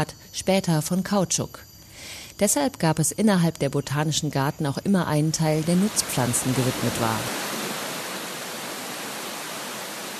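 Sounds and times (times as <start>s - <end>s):
speech: 0.0s - 7.4s
heavy tropical rain: 5.6s - 10.1s.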